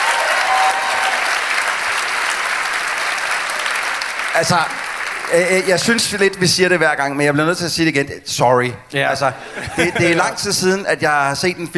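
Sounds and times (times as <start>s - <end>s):
audience clapping: 0.0s - 6.4s
speech: 4.4s - 11.7s
laughter: 9.2s - 10.6s.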